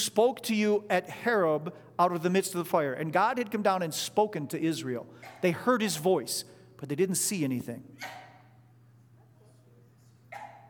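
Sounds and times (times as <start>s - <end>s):
speech: 0.1s - 8.2s
sneeze: 8.0s - 8.4s.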